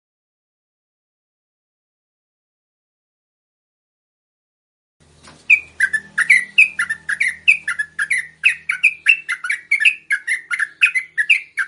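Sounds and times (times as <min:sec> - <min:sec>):
yellow-vented bulbul song: 0:05.2 - 0:11.6.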